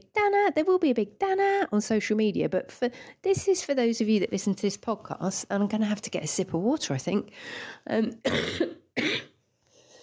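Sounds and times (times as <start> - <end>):
speech: 0.2 - 9.3
person coughing: 8.2 - 9.4.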